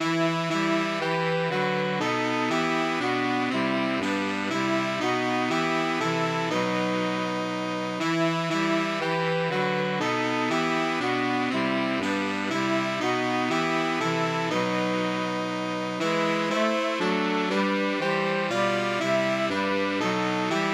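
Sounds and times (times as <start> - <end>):
saxophone quartet: 0.0 - 20.7.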